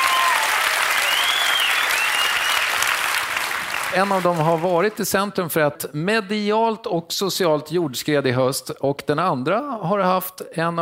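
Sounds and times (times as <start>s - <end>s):
audience applause: 0.0s - 5.0s
speech: 3.9s - 10.8s.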